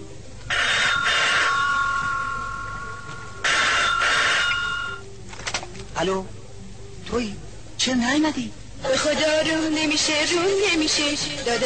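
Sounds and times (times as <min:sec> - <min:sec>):
telephone bell ringing: 0:00.5 - 0:02.4, 0:03.4 - 0:05.0
speech: 0:06.0 - 0:06.4, 0:07.1 - 0:11.6.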